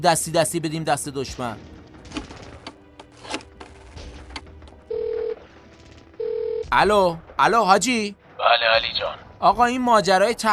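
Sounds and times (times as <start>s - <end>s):
speech: 0.0s - 2.2s, 6.7s - 10.5s
telephone electronic ringing tone while calling someone: 4.9s - 5.4s, 6.2s - 6.6s.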